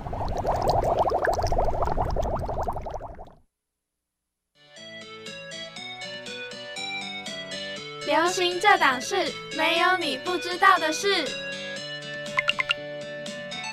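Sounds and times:
liquid gurgling and bubbling: 0.0 - 3.4
speech: 8.3 - 11.4.

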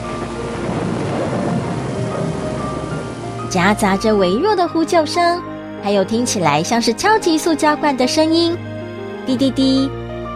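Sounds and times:
heavy rain in a thunderstorm: 0.0 - 6.4
deep rumbling thunder: 0.0 - 7.7
speech: 3.5 - 8.7, 9.3 - 10.0.

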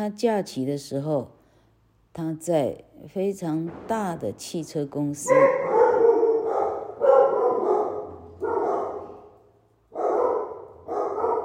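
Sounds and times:
speech: 0.0 - 1.4, 2.2 - 5.7
dog barking loudly: 5.3 - 11.4.

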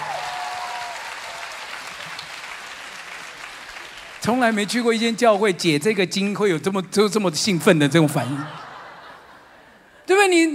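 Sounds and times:
audience clapping: 0.0 - 5.7
speech: 4.2 - 8.6
laughter: 8.1 - 9.9.

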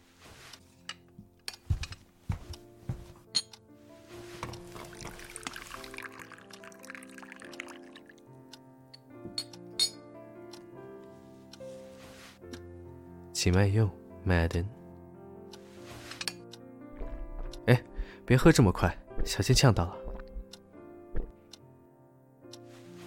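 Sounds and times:
hot water pouring: 4.6 - 8.2
porcelain teacup clinking: 4.7 - 8.1
speech: 13.4 - 14.8, 17.7 - 20.0.

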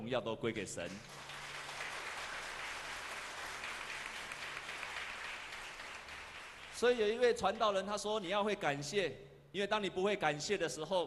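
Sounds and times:
speech: 0.1 - 1.3, 6.8 - 11.0
crowd applause: 1.0 - 7.0.

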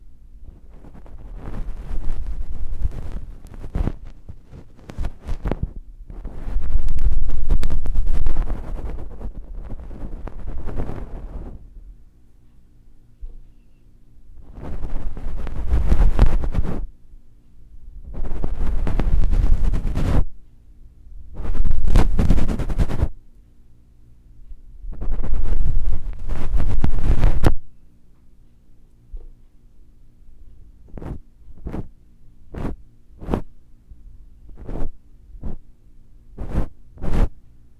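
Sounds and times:
faint hum: 0.0 - 37.7
ear cleaning scrapes with different tools: 0.5 - 11.6, 14.4 - 16.9, 18.1 - 20.3, 21.4 - 23.1, 25.0 - 27.6, 30.9 - 31.9, 32.5 - 33.5, 34.5 - 35.6, 36.4 - 37.3.

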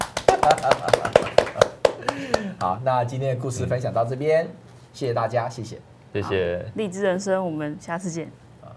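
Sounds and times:
applause: 0.0 - 2.7
speech: 0.4 - 1.1, 2.2 - 8.4.

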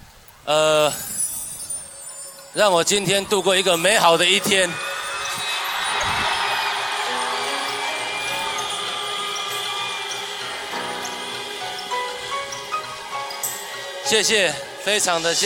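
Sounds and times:
speech: 0.5 - 1.2, 2.6 - 4.9, 14.1 - 15.4
stadium crowd applauding and cheering: 3.5 - 15.4
brighter shouts above the crowd: 3.8 - 11.2.

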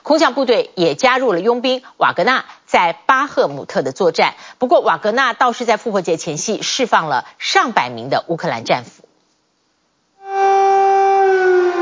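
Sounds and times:
speech: 0.1 - 9.0
air raid siren wailing: 10.2 - 11.8.

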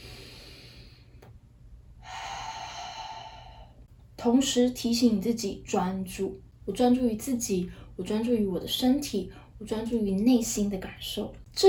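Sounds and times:
deep breathing: 0.0 - 1.3, 2.0 - 3.9
speech: 4.2 - 11.6.

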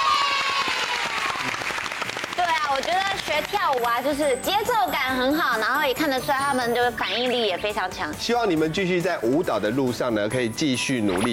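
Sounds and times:
audience applause: 0.0 - 3.6
speech: 3.3 - 11.3.

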